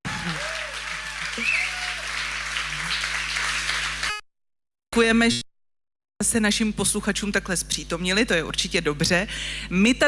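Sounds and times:
packed theatre audience noise: 0.0 - 4.2
speech: 1.4 - 1.7, 5.0 - 5.5, 6.2 - 10.0.

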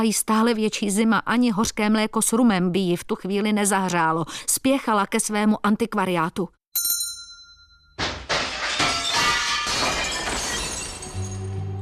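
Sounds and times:
speech: 0.0 - 7.0
glass shards clattering and tinkling: 8.0 - 11.6
large pane of shop window glass shattering: 8.0 - 11.7.

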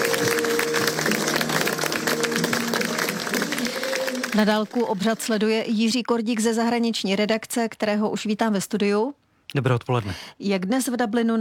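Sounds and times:
crowd applauding outside a cathedral: 0.0 - 5.4
speech: 4.4 - 11.3.

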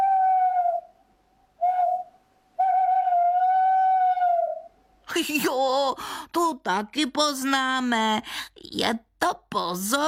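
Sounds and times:
owl hooting outside: 1.6 - 4.7
speech: 5.2 - 10.0.

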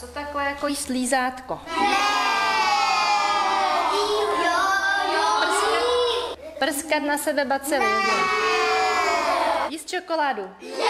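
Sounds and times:
speech: 0.1 - 2.1, 6.6 - 8.4, 9.9 - 10.8
children shouting over each other in classroom: 1.7 - 6.4, 7.8 - 9.7, 10.6 - 10.8.

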